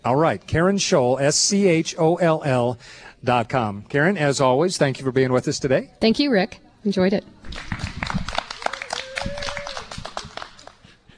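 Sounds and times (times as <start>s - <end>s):
speech: 0.0s - 7.8s
people clapping: 7.4s - 11.1s
people cheering woo-woos: 8.5s - 10.7s.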